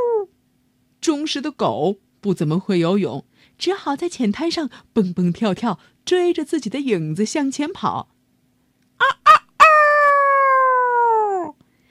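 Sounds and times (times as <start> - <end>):
speech: 1.0 - 8.1, 9.0 - 9.2
rooster crowing loudly: 9.0 - 11.5.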